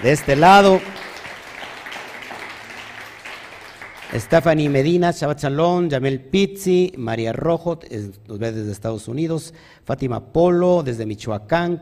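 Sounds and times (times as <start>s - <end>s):
speech: 0.0s - 1.0s, 4.1s - 11.8s
audience applause: 0.0s - 4.8s.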